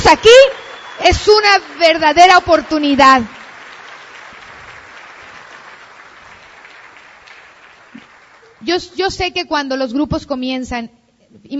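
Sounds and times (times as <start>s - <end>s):
audience applause: 0.0s - 8.6s
speech: 0.1s - 3.4s, 8.6s - 11.5s.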